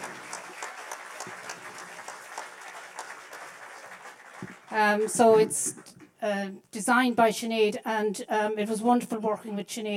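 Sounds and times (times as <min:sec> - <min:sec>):
audience applause: 0:00.0 - 0:05.4
speech: 0:04.7 - 0:09.9.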